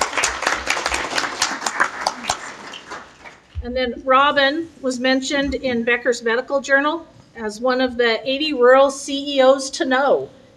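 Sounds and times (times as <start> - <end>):
audience applause: 0.0 - 3.5
speech: 3.6 - 10.4.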